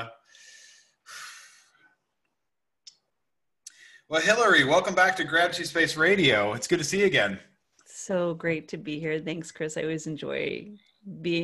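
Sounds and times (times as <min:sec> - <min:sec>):
person breathing in: 0:00.2 - 0:02.0
speech: 0:04.1 - 0:11.4.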